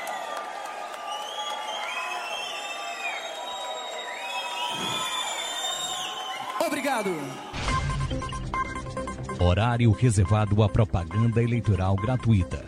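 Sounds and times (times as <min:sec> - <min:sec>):
audience applause: 0:00.0 - 0:07.6
speech: 0:06.7 - 0:08.4, 0:09.4 - 0:12.6.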